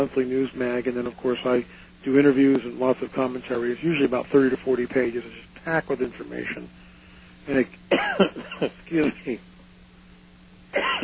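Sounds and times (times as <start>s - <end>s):
speech: 0.0s - 6.8s, 7.4s - 9.5s, 10.7s - 11.0s
person coughing with harsh throat clearing: 7.9s - 8.8s, 10.8s - 11.0s.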